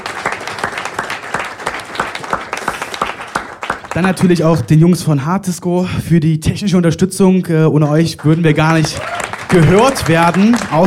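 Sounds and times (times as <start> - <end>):
audience applause: 0.0 - 4.4, 8.2 - 10.8
speech: 4.0 - 10.8.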